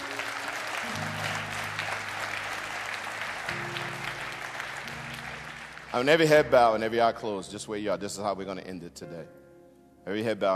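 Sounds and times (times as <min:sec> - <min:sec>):
audience clapping: 0:00.0 - 0:06.6
speech: 0:06.0 - 0:09.4, 0:10.0 - 0:10.5.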